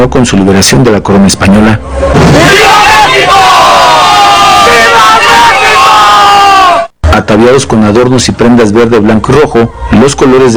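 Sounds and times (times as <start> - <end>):
speech: 0.0 - 3.4, 7.4 - 10.5
crowd shouting at independence celebration: 1.9 - 6.9.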